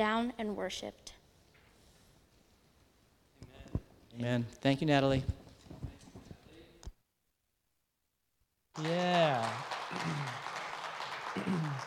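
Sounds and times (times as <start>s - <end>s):
speech: 0.0s - 1.2s, 4.2s - 5.4s, 8.8s - 10.4s, 11.4s - 11.8s
crowd clapping: 8.8s - 11.8s.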